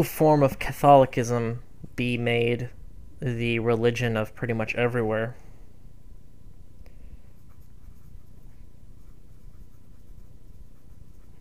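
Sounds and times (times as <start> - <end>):
speech: 0.0 - 5.4
low constant hiss: 0.0 - 11.3
pen or pencil scratching on paper while writing by hand: 7.4 - 11.3.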